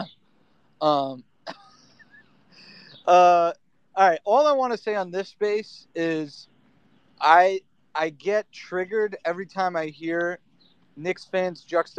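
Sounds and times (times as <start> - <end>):
speech: 0.8 - 1.6, 2.6 - 6.5, 7.2 - 10.4, 11.0 - 11.9
person clearing throat: 1.5 - 1.8.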